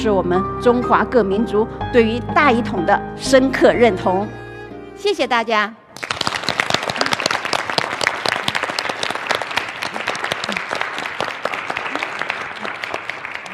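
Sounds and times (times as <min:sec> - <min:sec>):
speech: 0:00.0 - 0:04.4, 0:05.0 - 0:05.8
audience applause: 0:06.0 - 0:13.5.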